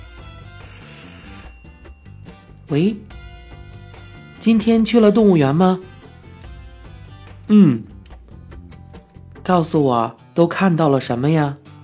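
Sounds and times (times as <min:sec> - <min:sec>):
telephone ringing: 0:00.5 - 0:02.5
speech: 0:02.7 - 0:03.1, 0:04.4 - 0:05.9, 0:07.5 - 0:07.9, 0:09.5 - 0:11.6.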